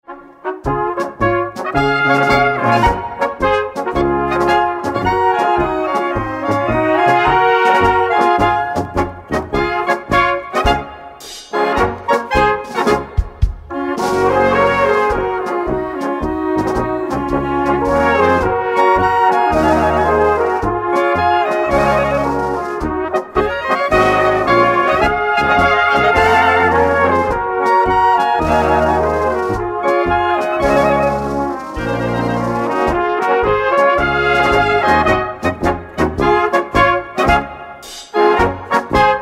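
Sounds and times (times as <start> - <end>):
brass band playing: 0.1 - 39.1.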